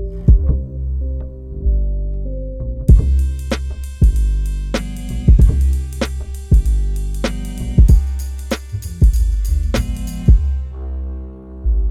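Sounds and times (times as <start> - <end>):
library music: 0.0 - 11.8.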